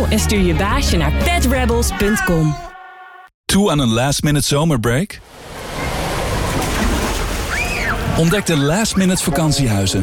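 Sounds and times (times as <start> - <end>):
speech: 0.1 - 2.7, 3.5 - 5.5, 8.2 - 10.0
people jumping into cool water at a holiday park pool: 5.3 - 9.2.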